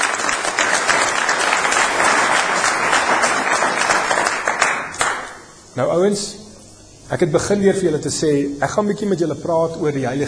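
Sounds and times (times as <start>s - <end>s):
crowd applauding: 0.0s - 5.5s
speech: 5.8s - 6.4s, 7.1s - 10.2s.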